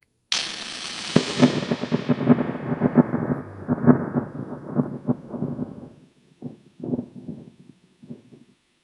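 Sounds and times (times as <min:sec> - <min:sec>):
quick magical lightning effect: 0:00.3 - 0:06.0.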